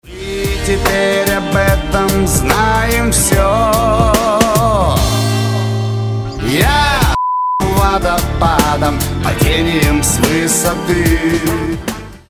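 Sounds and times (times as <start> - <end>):
song: 0.1 - 12.2.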